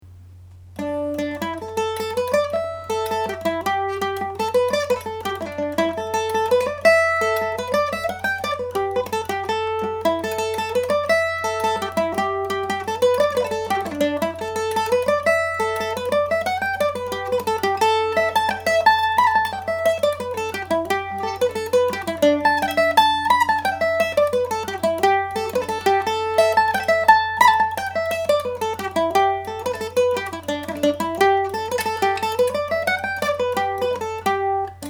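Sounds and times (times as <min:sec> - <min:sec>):
Irish mandolin tune: 0:00.8 - 0:34.8.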